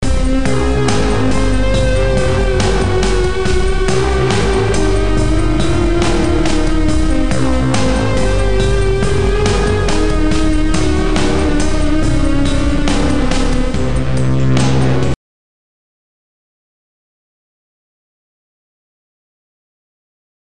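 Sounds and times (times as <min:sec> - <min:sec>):
race game menu music: 0:00.0 - 0:15.1.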